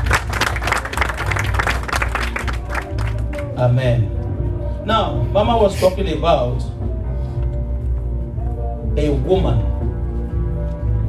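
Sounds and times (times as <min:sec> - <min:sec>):
audience applause: 0:00.0 - 0:03.6
low rhythmic bass rumble: 0:00.0 - 0:11.0
speech: 0:03.6 - 0:04.2, 0:04.8 - 0:06.8, 0:09.0 - 0:09.7.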